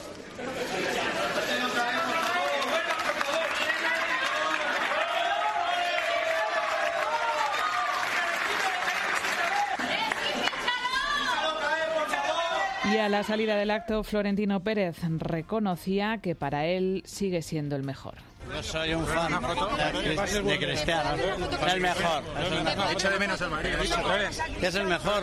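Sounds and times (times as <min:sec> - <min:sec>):
crowd shouting in the stands: 0:00.5 - 0:13.8
speech: 0:13.1 - 0:25.2.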